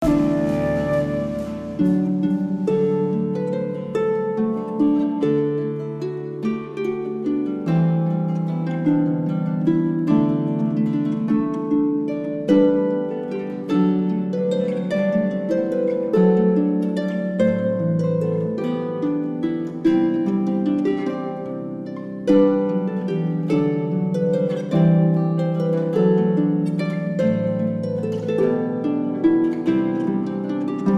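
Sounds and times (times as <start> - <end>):
harp: 0.0 - 30.9.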